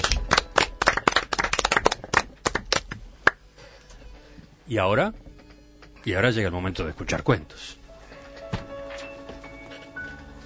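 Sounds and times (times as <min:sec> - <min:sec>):
applause: 0:00.0 - 0:03.4
speech: 0:04.7 - 0:05.3, 0:06.0 - 0:07.8.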